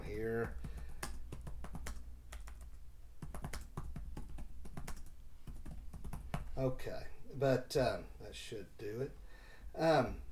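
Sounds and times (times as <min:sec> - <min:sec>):
speech: 0:00.2 - 0:00.7, 0:06.6 - 0:09.2, 0:09.8 - 0:10.2
typing on a computer keyboard: 0:00.4 - 0:06.4.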